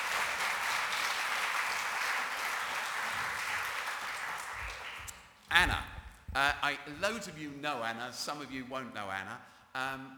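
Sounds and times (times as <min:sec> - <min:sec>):
crowd applauding: 0:00.0 - 0:05.2
speech: 0:05.5 - 0:10.1.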